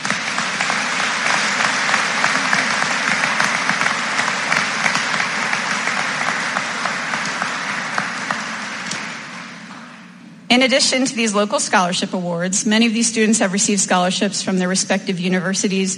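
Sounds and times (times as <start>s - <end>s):
audience round of applause: 0.0s - 9.8s
speech: 10.5s - 15.9s.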